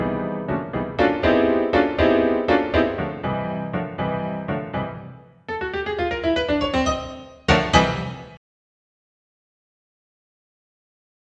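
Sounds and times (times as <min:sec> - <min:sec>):
piano: 0:00.0 - 0:08.4.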